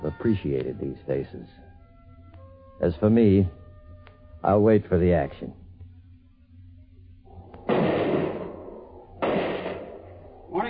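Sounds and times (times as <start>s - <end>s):
speech: 0.2s - 1.7s, 2.8s - 3.6s, 4.4s - 5.6s
gunshots: 7.7s - 10.2s.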